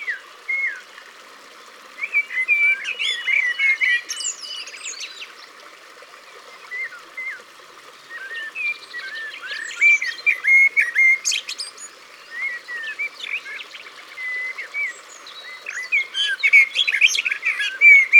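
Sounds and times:
Common blackbird song: 2.0s - 5.4s, 8.1s - 18.1s.

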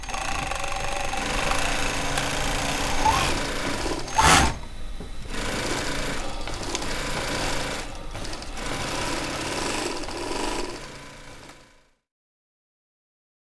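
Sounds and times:
duvet sewing workshop ambience in Saint-Pierreville Ardeche: 0.0s - 12.0s.

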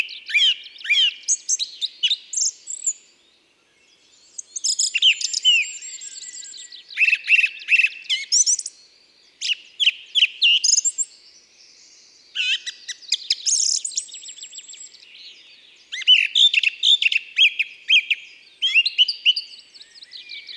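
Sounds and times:
song thrush singing: 0.0s - 20.5s.

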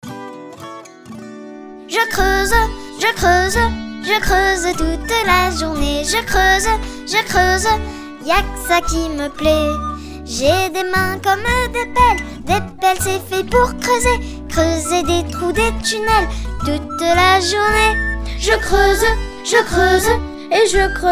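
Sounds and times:
French chanson: 1.8s - 21.0s.

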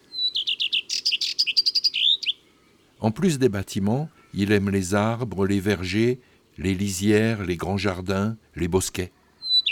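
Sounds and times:
common redstart song: 0.0s - 9.7s
speech: 3.0s - 9.2s.

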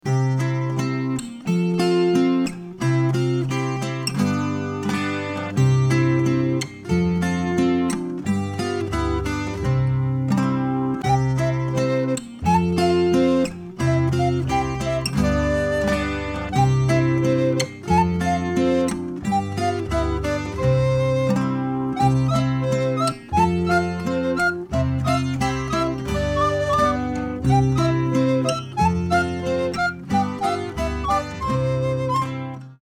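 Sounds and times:
instrumental music: 0.0s - 32.8s.

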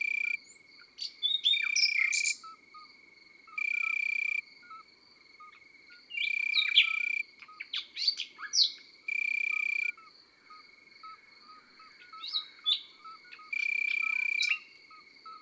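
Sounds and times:
common nightingale singing: 0.0s - 2.6s, 6.1s - 10.1s, 11.8s - 15.4s
cricket trills: 0.0s - 15.4s.

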